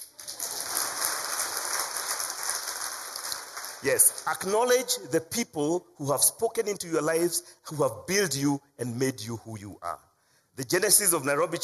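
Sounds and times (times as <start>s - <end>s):
audience clapping: 0.0s - 4.8s
speech: 3.8s - 11.6s.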